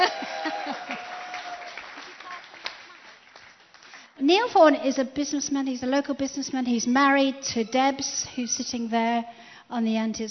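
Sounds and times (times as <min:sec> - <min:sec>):
audience clapping: 0:00.0 - 0:04.2
speech: 0:04.3 - 0:10.2.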